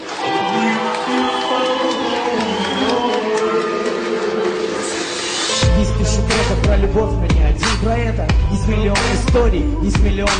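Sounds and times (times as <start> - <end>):
audience applause: 0.0 - 5.6
speech: 6.9 - 10.3.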